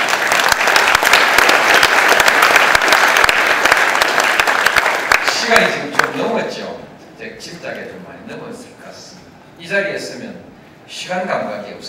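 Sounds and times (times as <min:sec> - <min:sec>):
audience applause: 0:00.0 - 0:06.1
speech: 0:11.1 - 0:11.8.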